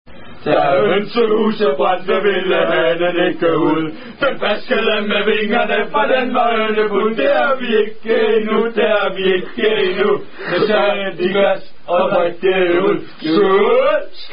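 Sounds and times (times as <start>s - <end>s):
Danish drinking songs: 0.1s - 14.3s.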